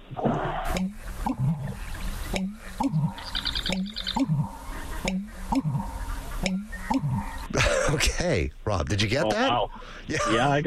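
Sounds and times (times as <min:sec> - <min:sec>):
American bittern mating call: 0:00.0 - 0:08.2
speech: 0:08.2 - 0:10.6.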